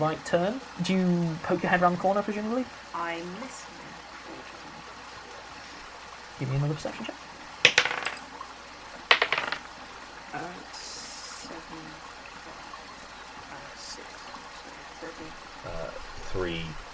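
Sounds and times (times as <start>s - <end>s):
speech: 0.0s - 3.8s, 6.4s - 7.2s, 10.3s - 10.8s, 11.5s - 12.1s, 15.0s - 16.8s
flowing water: 0.0s - 16.9s.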